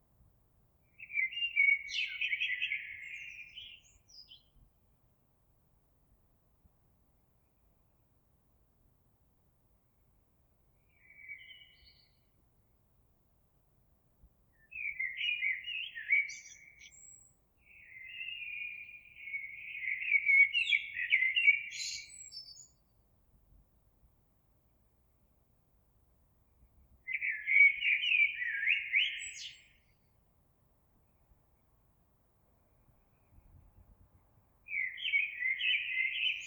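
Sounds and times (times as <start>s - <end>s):
Eurasian blackbird singing: 0.9s - 4.5s, 10.9s - 12.2s, 14.6s - 22.8s, 27.1s - 30.0s, 34.7s - 36.4s.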